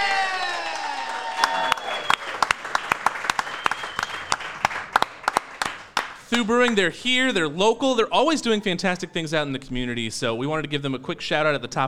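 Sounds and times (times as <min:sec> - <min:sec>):
audience applause: 0:00.0 - 0:06.8
speech: 0:06.4 - 0:11.8.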